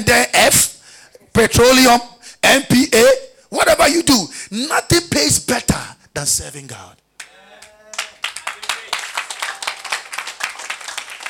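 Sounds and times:
speech: 0.0s - 0.7s, 1.4s - 7.0s
audience clapping: 7.2s - 11.2s.

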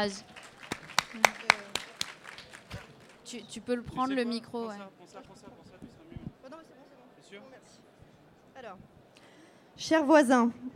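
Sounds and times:
speech: 0.0s - 0.4s, 3.3s - 5.9s, 7.3s - 7.8s, 8.6s - 8.9s, 9.8s - 10.7s
audience applause: 0.0s - 3.3s.

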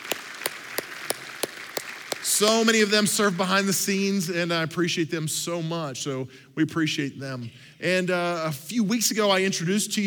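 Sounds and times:
round of applause: 0.0s - 3.0s
speech: 2.4s - 10.0s.

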